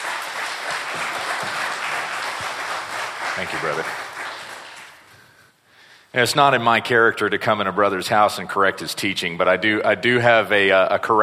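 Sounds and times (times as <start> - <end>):
congregation applauding a guest preacher at a morning church service: 0.0 - 5.4
speech: 3.4 - 4.0, 6.1 - 11.2.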